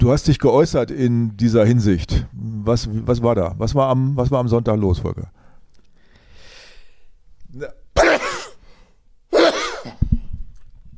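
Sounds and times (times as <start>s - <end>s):
speech: 0.0s - 5.4s, 7.5s - 7.8s
sneeze: 8.0s - 8.6s, 9.3s - 10.0s.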